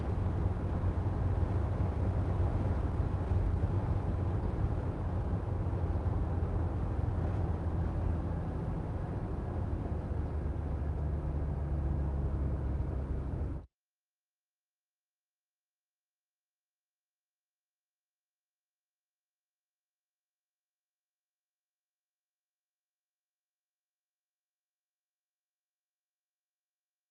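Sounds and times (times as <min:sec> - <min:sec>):
Renault Master F3500 dCi 135 van engine accelerating, heard from interior: 0:00.0 - 0:13.7.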